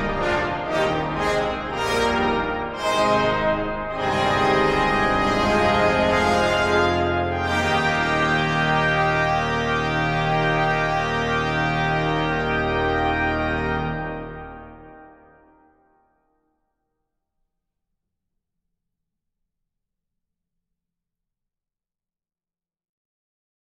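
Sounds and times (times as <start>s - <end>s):
festive prelude music: 0.0s - 16.0s.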